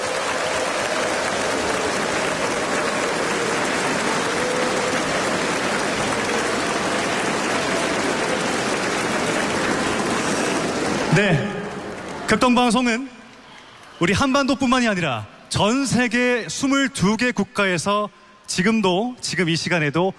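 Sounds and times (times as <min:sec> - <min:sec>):
large audience applause: 0:00.0 - 0:14.8
speech: 0:11.2 - 0:11.5, 0:12.3 - 0:13.1, 0:14.0 - 0:20.1.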